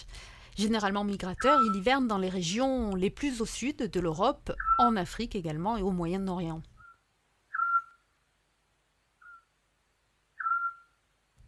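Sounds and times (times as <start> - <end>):
speech: 0.6 - 6.7
Eurasian scops owl whistling call: 1.4 - 1.8, 6.8 - 8.0, 9.2 - 9.5, 10.4 - 11.0.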